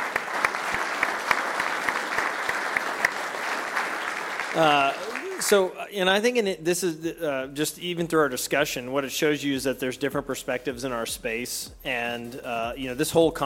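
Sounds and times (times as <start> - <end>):
conference audience applause: 0.0 - 5.7
speech: 4.6 - 13.4.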